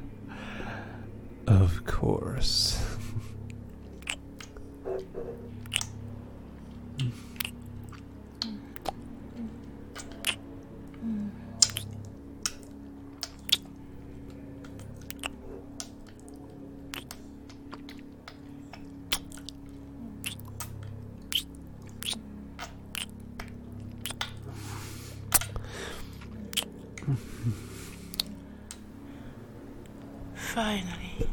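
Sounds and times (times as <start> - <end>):
low steady hum: 0.0 - 31.3
speech: 1.5 - 2.9
soft wet kissing smacks: 4.0 - 6.0, 7.0 - 9.0, 9.9 - 10.4, 11.6 - 13.7, 14.6 - 16.3, 16.9 - 19.6, 20.2 - 24.4, 25.3 - 25.7, 26.5 - 26.8, 28.1 - 28.9.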